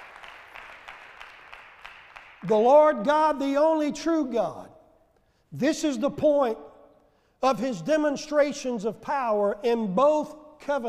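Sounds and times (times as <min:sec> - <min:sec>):
audience clapping hands in praise: 0:00.0 - 0:02.6
speech: 0:02.4 - 0:04.7, 0:05.5 - 0:06.7, 0:07.4 - 0:10.8.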